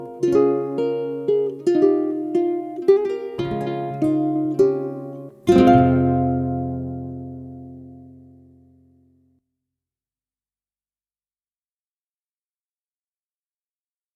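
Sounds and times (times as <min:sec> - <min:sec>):
lullaby music: 0:00.0 - 0:08.2.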